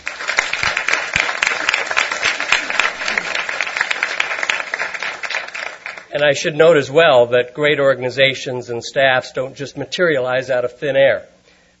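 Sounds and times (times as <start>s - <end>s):
audience applause: 0.0s - 6.1s
speech: 6.2s - 11.3s.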